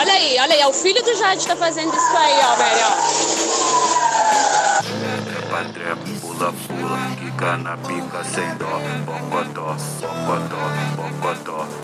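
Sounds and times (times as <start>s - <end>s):
pickup truck engines revving at full throttle: 0.0s - 11.8s
speech: 0.2s - 3.3s, 5.6s - 11.8s.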